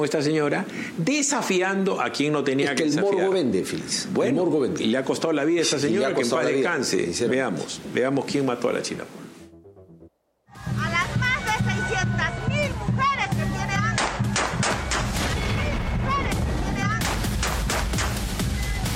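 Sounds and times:
speech: 0:00.0 - 0:09.2
crowd chattering: 0:10.5 - 0:17.0
gunshots: 0:14.0 - 0:18.4.

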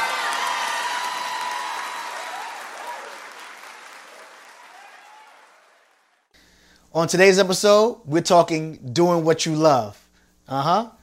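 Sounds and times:
cheers and whoops: 0:00.0 - 0:06.1
audience clapping hands: 0:00.0 - 0:06.3
speech: 0:06.9 - 0:11.0.

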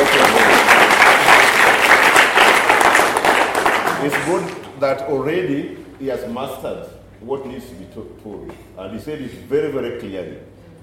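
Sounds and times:
crowd applauding: 0:00.0 - 0:04.7
speech: 0:04.3 - 0:10.5.

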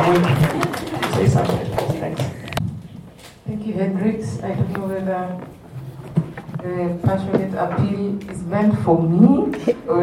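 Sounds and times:
audience clapping: 0:00.0 - 0:02.6
speech: 0:00.1 - 0:00.7, 0:03.8 - 0:05.6, 0:06.6 - 0:10.0.

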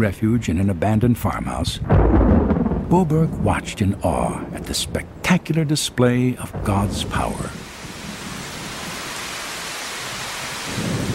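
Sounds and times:
speech: 0:00.0 - 0:07.6
great peals of thunder: 0:01.8 - 0:09.0, 0:10.6 - 0:11.1
driving rain in a thunderstorm: 0:01.8 - 0:11.1.

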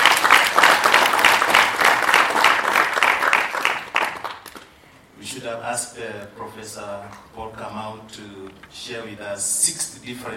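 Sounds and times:
audience clapping: 0:00.0 - 0:04.8
speech: 0:05.4 - 0:10.3.

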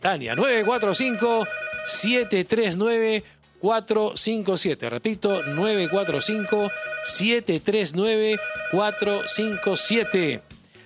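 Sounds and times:
speech: 0:00.0 - 0:10.6
telephone ringing for an incoming call-in: 0:00.3 - 0:02.4, 0:05.4 - 0:07.4, 0:08.2 - 0:10.4.

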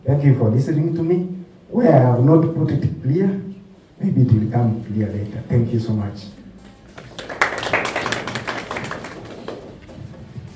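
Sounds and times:
speech: 0:00.0 - 0:06.4
audience clapping: 0:06.6 - 0:10.3.

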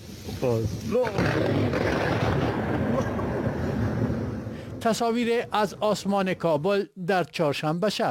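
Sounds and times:
speech: 0:00.4 - 0:03.2, 0:04.8 - 0:08.1
thunder from a lightning storm: 0:00.8 - 0:06.6.

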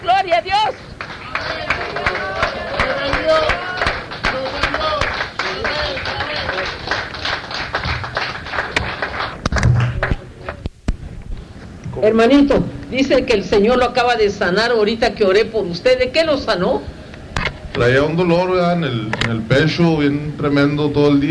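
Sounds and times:
speech: 0:00.3 - 0:00.8, 0:12.0 - 0:16.9, 0:17.8 - 0:21.2
audience applause: 0:00.8 - 0:10.6.

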